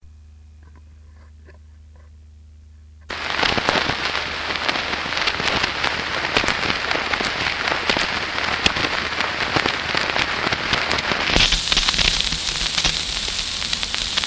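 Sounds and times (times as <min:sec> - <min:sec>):
very old record noise and interference: 0:00.0 - 0:14.2.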